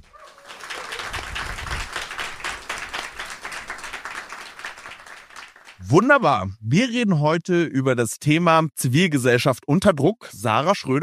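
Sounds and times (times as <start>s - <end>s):
live audience applause: 0.0s - 5.8s
speech: 5.9s - 11.0s.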